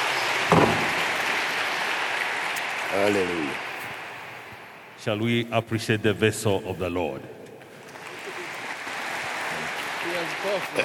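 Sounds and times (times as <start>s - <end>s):
crowd clapping: 0.0s - 5.0s, 7.6s - 10.8s
speech: 2.9s - 3.7s, 5.0s - 7.4s, 10.4s - 10.8s.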